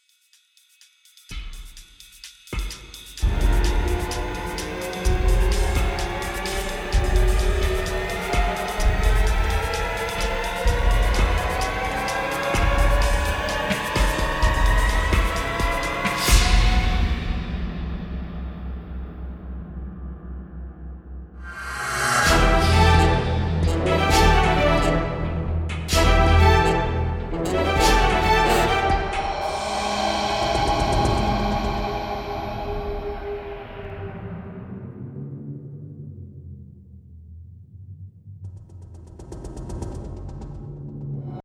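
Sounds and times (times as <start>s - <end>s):
drama action production music: 2.6s - 34.6s.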